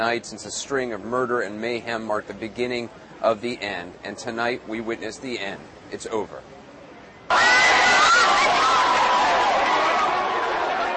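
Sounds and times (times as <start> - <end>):
speech: 0.0 - 6.5
large street crowd cheering and shouting: 7.3 - 10.9.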